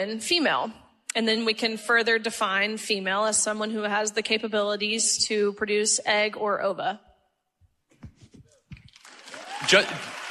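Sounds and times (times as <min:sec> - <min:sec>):
speech: 0:00.0 - 0:07.1, 0:09.7 - 0:10.1
audience applause: 0:08.9 - 0:10.2.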